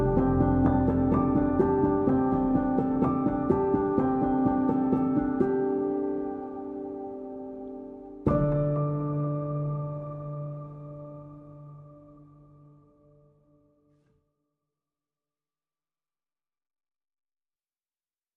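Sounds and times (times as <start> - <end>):
piano patterns: 0.0 - 13.6.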